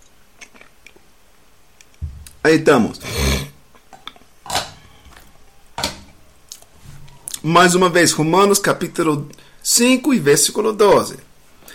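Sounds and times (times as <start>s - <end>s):
low hiss: 0.0s - 11.7s
speech: 2.4s - 3.2s, 7.4s - 11.3s
person sipping water: 3.0s - 5.3s.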